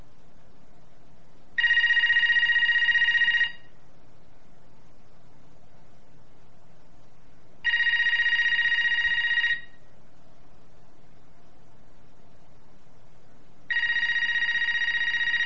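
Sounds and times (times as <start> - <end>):
telephone ringing at night: 1.6 - 3.7, 7.6 - 9.8, 13.7 - 15.4.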